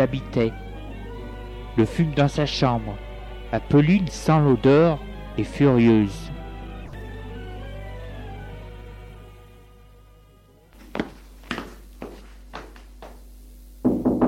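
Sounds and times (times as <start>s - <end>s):
speech: 0.0s - 0.6s, 1.8s - 6.3s
low sustained musical drone: 0.0s - 10.7s
knocking on a bedroom door: 13.8s - 14.2s.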